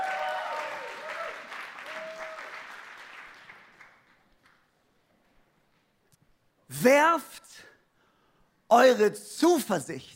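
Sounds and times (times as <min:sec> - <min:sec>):
applause: 0:00.0 - 0:04.8
speech: 0:06.8 - 0:07.7, 0:08.7 - 0:10.1.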